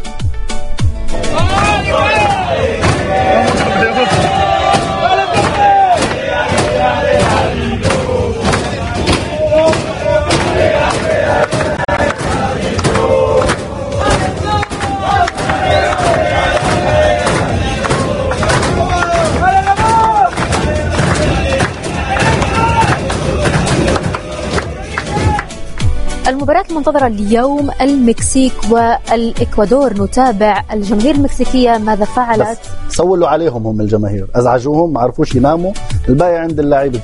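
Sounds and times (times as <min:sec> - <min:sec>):
rhythmic claps and thumps: 0:00.8 - 0:27.6
Paraguay team chanting and shouting in the dressing room: 0:01.0 - 0:26.2, 0:30.9 - 0:32.9
speech: 0:26.9 - 0:37.0.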